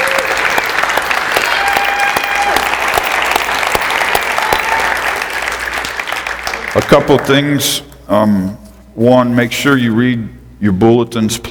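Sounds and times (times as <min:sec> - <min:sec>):
audience applause: 0:00.0 - 0:07.4
speech: 0:06.9 - 0:11.4.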